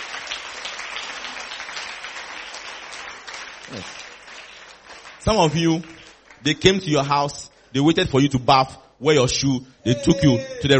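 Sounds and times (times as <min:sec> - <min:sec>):
audience clapping: 0:00.0 - 0:07.2
speech: 0:03.7 - 0:04.1, 0:05.2 - 0:10.7.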